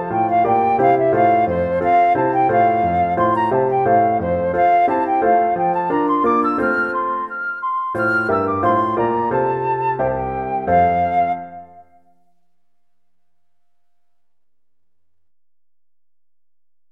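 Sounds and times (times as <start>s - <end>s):
baroque flute sonata: 0.0s - 12.6s.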